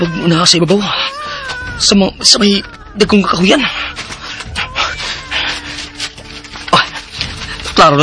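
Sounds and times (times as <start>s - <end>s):
speech: 0.0s - 1.2s, 1.8s - 4.1s, 7.8s - 8.0s
child crying: 0.0s - 6.1s.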